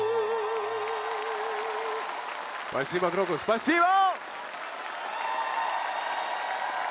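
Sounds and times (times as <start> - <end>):
audience applause: 0.1 - 6.8
speech: 2.7 - 4.1.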